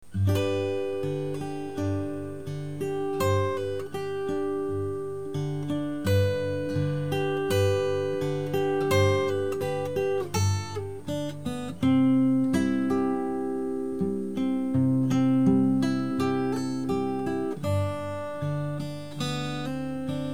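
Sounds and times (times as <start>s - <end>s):
guitar mix: 0.0s - 20.3s.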